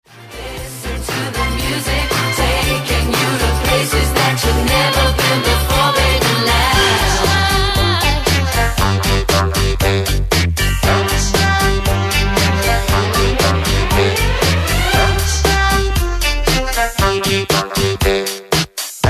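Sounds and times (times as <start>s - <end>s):
music beat: 0.4s - 19.0s.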